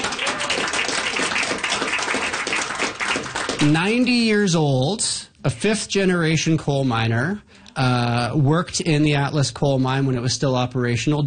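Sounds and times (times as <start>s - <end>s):
crowd applauding: 0.0s - 4.1s
speech: 3.6s - 11.2s.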